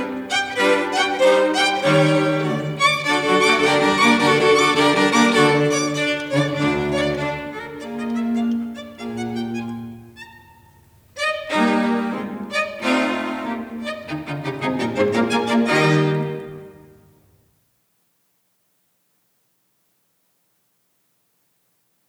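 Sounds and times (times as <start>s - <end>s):
string quartet: 0.0s - 17.2s.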